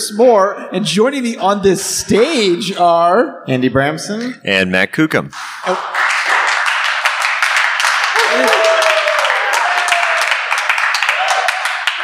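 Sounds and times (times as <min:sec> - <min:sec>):
speech: 0:00.1 - 0:06.1
live student audience at Bethel University clapping: 0:05.4 - 0:12.0
audience cheers: 0:07.8 - 0:12.0.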